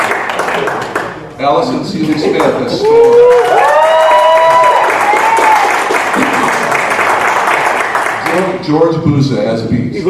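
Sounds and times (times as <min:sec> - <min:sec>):
audience applauding and clapping: 0:00.0 - 0:01.2, 0:02.0 - 0:08.6
speech: 0:01.4 - 0:03.9, 0:08.4 - 0:10.0.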